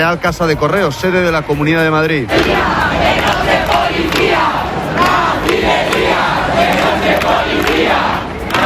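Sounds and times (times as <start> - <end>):
speech: 0.0 - 5.8
protesters shouting at police: 2.3 - 8.6.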